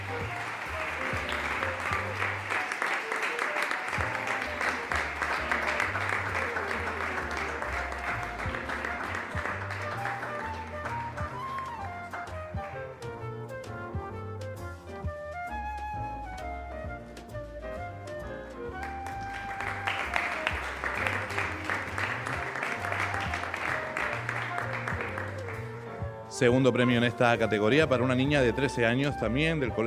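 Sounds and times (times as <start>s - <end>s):
audience applause: 0.0s - 12.9s, 18.8s - 25.9s
music: 0.0s - 29.8s
speech: 26.4s - 29.8s.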